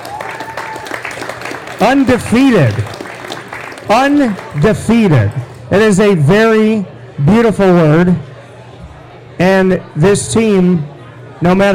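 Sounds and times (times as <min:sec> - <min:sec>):
audience applause: 0:00.0 - 0:05.6
speech: 0:01.8 - 0:03.0, 0:03.9 - 0:08.3, 0:09.4 - 0:11.7.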